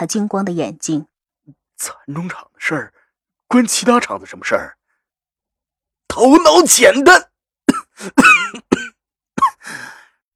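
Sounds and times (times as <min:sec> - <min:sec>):
speech: 0:00.0 - 0:01.1, 0:01.8 - 0:04.8, 0:06.1 - 0:07.3, 0:08.0 - 0:10.0
man coughing angrily: 0:07.7 - 0:09.6.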